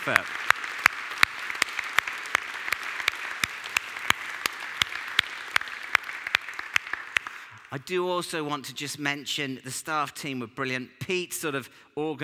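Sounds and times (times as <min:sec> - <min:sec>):
speech: 0:00.0 - 0:00.4, 0:07.7 - 0:12.2
audience applause: 0:00.0 - 0:07.7.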